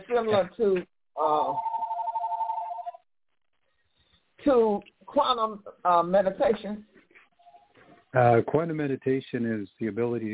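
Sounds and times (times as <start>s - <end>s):
speech: 0.1s - 1.7s, 4.4s - 6.9s, 8.1s - 10.3s
telephone ringing with a warbling ring tone: 1.3s - 3.0s.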